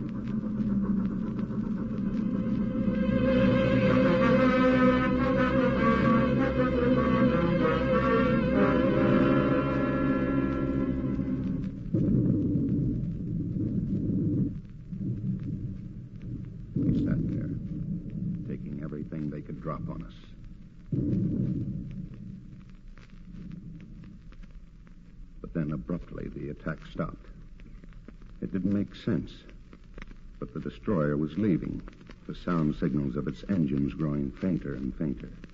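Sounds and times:
underwater depth charge explosions: 0.0s - 35.5s
speech: 31.2s - 35.5s.

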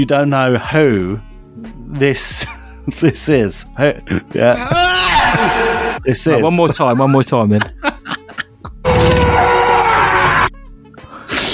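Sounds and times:
speech: 0.0s - 7.9s
laughter: 3.9s - 9.1s
man screaming in a film clip: 4.5s - 6.0s, 8.8s - 10.5s.

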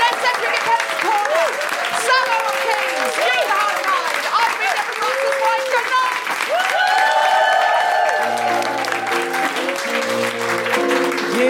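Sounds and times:
audience applause: 0.0s - 11.4s
bright musical theme: 8.0s - 11.4s.

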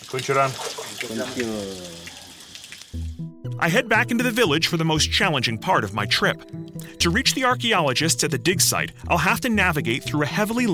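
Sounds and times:
shower water running in a hissing spray: 0.0s - 3.2s, 10.2s - 10.7s
speech: 0.1s - 2.2s, 3.6s - 10.7s.

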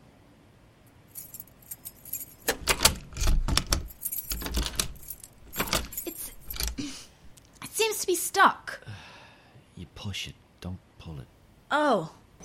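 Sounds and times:
keys jingling against a lock while unlocking a door: 1.1s - 6.8s
speech: 8.4s - 8.6s, 11.7s - 12.2s.

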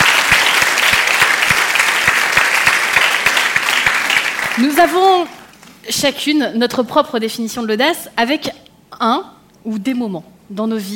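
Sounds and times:
audience applause: 0.0s - 5.3s
speech: 4.6s - 10.9s.

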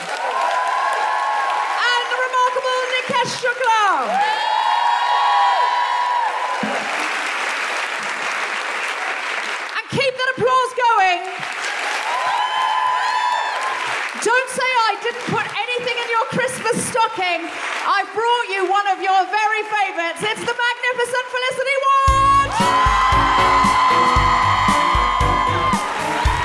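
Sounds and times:
audience cheering: 0.0s - 9.5s, 11.4s - 14.2s, 22.1s - 26.4s
audience applause: 0.0s - 9.9s, 11.2s - 17.9s, 22.1s - 26.4s
speech: 17.1s - 23.0s.

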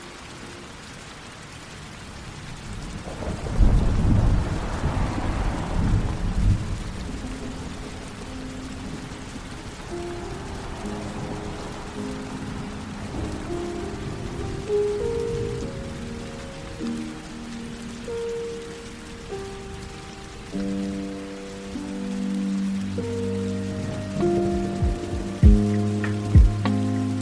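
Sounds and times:
rain hissing: 0.0s - 27.2s
heavy rumble of thunder: 2.0s - 27.2s
sustained musical tones in a slow melody: 6.3s - 27.2s.

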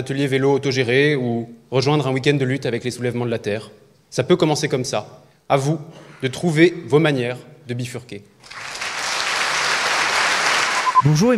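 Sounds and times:
speech: 0.0s - 8.7s, 11.0s - 11.3s
audience applause: 8.4s - 11.0s.

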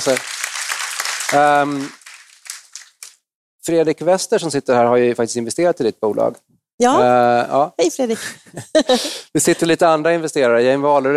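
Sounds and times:
speech: 0.0s - 0.4s, 1.3s - 2.0s, 3.7s - 11.1s
audience applause: 0.0s - 3.1s.

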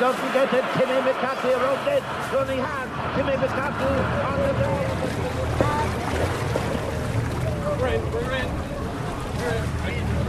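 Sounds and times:
speech: 0.0s - 5.6s, 7.8s - 8.7s, 9.4s - 10.2s
faint tonal whines: 0.0s - 10.2s
ferry engine rumble: 0.0s - 10.2s
water noise: 0.0s - 10.2s
wind: 0.2s - 6.6s.

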